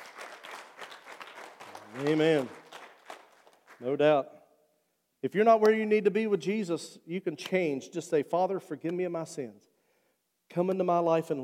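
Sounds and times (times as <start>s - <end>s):
audience clapping hands: 0.0s - 4.1s
speech: 1.9s - 2.6s, 3.8s - 4.4s, 5.2s - 9.7s, 10.5s - 11.4s.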